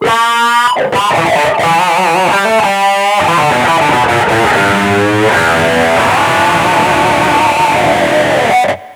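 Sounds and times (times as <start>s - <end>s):
guitar: 0.0s - 8.9s.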